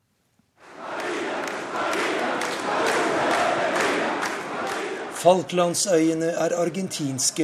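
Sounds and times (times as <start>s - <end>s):
large crowd chanting rhythmically at political rally: 0.6s - 5.2s
speech: 5.2s - 7.4s.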